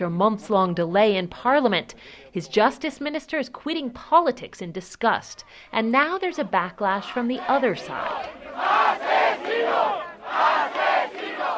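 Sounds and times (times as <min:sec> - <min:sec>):
speech: 0:00.0 - 0:10.9
anti-abortion protesters screaming outside ruling party headquarters: 0:07.0 - 0:11.5.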